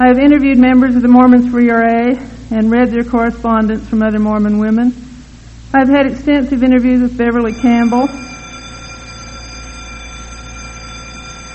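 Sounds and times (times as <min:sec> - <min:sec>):
speech: 0:00.0 - 0:05.0, 0:05.7 - 0:08.3
long ringing metallic bell: 0:07.5 - 0:11.5.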